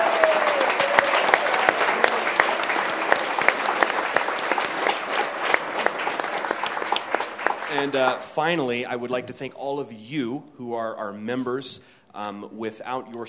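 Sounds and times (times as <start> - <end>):
audience applause: 0.0 - 8.6
speech: 7.8 - 13.2.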